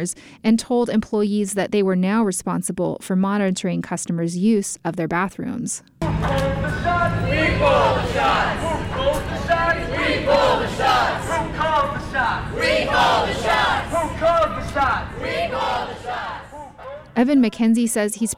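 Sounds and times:
speech: 0.0 - 11.5, 17.2 - 18.3
crowd chanting and shouting at a rally: 6.0 - 17.4.

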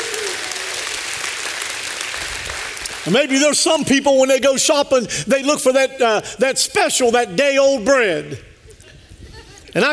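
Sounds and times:
audience applause: 0.0 - 3.3
speech: 3.1 - 8.5, 9.8 - 9.9.

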